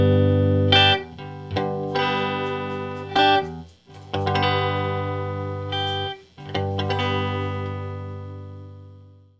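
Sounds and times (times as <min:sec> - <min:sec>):
blues guitar chords through an amp head: 0:00.0 - 0:09.3.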